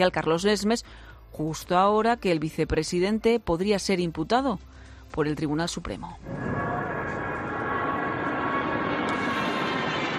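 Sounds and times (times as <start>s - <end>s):
speech: 0.0s - 6.6s
Patrulla Águila aerobatic jet formation flying over the capital: 6.2s - 10.1s.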